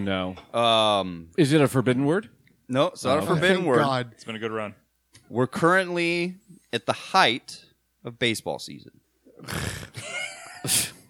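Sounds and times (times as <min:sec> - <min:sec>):
speech: 0:00.0 - 0:10.0, 0:10.6 - 0:10.9
person imitating a snore: 0:09.4 - 0:10.0.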